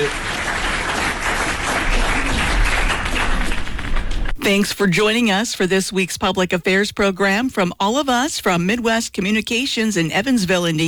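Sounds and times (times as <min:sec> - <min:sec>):
crowd applauding: 0:00.0 - 0:04.8
speech: 0:04.4 - 0:10.8.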